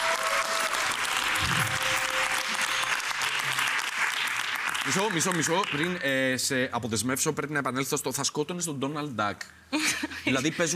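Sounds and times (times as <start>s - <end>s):
audience applause: 0.0s - 6.0s
speech: 4.9s - 10.7s.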